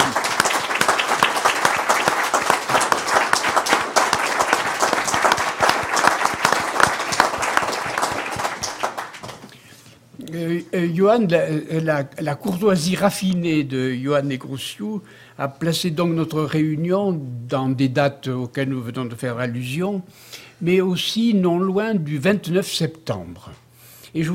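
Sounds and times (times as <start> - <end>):
audience applause: 0.0 - 9.5
speech: 10.7 - 24.3.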